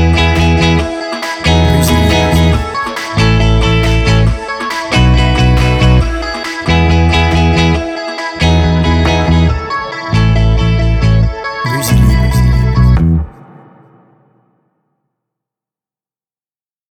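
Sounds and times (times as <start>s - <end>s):
happy fun music: 0.1s - 13.3s.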